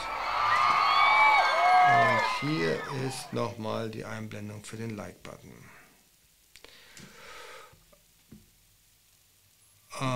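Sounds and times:
applause: 0.0 - 3.4
speech: 2.4 - 5.8, 10.0 - 10.1.

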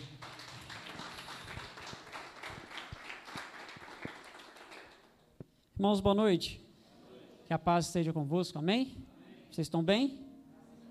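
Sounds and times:
audience applauding: 0.0 - 5.2
speech: 5.8 - 6.6, 7.5 - 10.2.

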